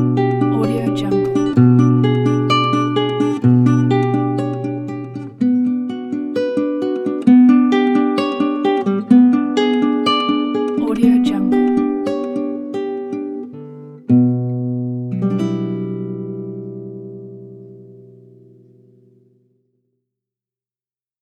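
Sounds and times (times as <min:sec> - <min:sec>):
emotional classical guitar: 0:00.0 - 0:19.8.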